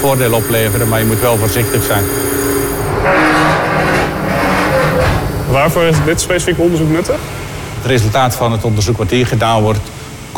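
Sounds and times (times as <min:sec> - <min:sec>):
speech: 0:00.0 - 0:02.4, 0:03.0 - 0:04.0, 0:05.5 - 0:10.3
low hum: 0:00.0 - 0:08.1
heavy radiation-shielding door of a cyclotron bunker opening: 0:02.8 - 0:08.4.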